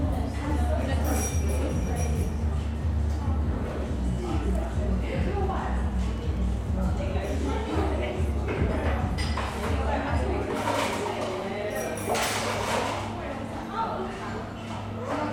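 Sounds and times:
overlapping chatter in a coffee shop: 0.0 - 15.3
cups clinking and clattering: 0.9 - 2.4, 10.5 - 13.0.

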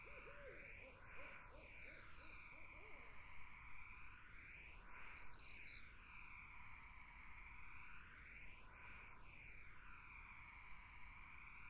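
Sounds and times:
barred owl hooting: 0.0 - 3.1
insect hum: 0.0 - 11.6.

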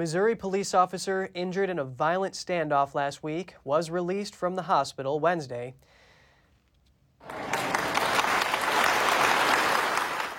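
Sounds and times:
speech: 0.0 - 6.0
friends, family and healthcare workers cheering in hospital halls: 7.2 - 10.3
friends, family and healthcare workers clapping in hospital halls: 7.2 - 10.3.

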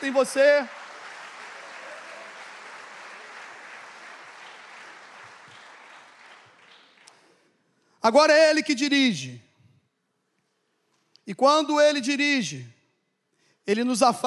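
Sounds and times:
speech: 0.0 - 0.8, 8.0 - 9.5, 11.3 - 12.8, 13.6 - 14.2
audience applauding: 0.0 - 7.4.

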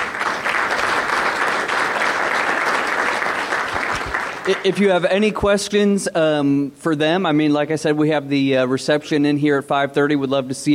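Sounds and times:
audience applause: 0.0 - 4.9
speech: 4.5 - 10.7.

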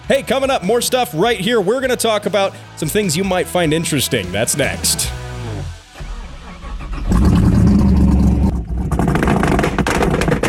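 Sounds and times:
speech: 0.1 - 5.3
car engine revving loudly: 5.2 - 9.5
car engine cranking and catching: 6.0 - 10.4.

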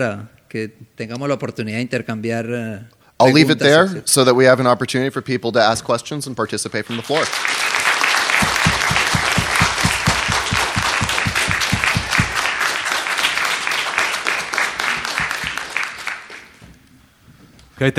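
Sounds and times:
speech: 0.0 - 7.8, 17.8 - 17.9
audience applause after a talk at a socialist political meeting: 6.9 - 16.6.

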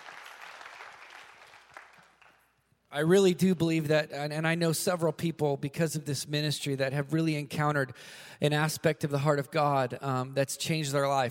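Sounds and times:
audience clapping: 0.0 - 2.6
speech: 2.9 - 11.2.

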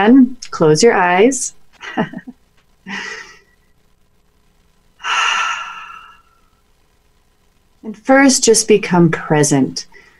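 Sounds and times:
speech: 0.0 - 3.2, 7.8 - 9.9
deep breaths during a guided meditation: 5.0 - 6.6, 9.9 - 10.1.

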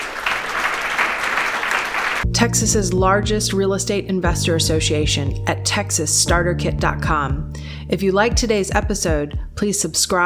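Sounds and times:
warm round of applause: 0.0 - 2.2
speech: 2.4 - 10.2.

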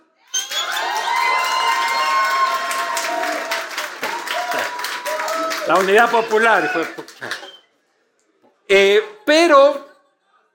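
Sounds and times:
audience applause and cheering: 0.3 - 7.6
speech: 5.7 - 7.4, 8.7 - 9.8.

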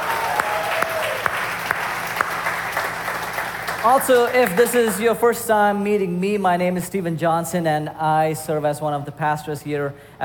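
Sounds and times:
church congregation applauding at Restoration Church in Bethlehem: 0.0 - 5.5
speech: 3.8 - 10.2.

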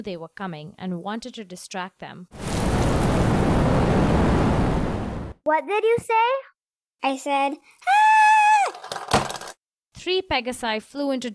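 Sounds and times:
speech: 0.0 - 2.9, 5.5 - 8.1, 10.0 - 11.3
ferocious wind roaring: 2.4 - 5.4.

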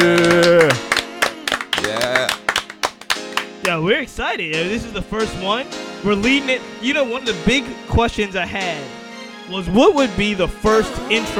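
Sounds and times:
people clapping: 0.0 - 3.9
speech: 3.8 - 11.3.

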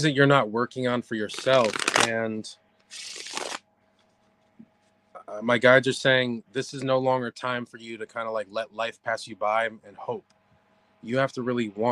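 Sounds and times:
speech: 0.0 - 3.4, 5.3 - 10.4, 11.0 - 11.8
cards being riffle-shuffled for a psychic card reading: 1.3 - 2.1, 2.9 - 3.6.

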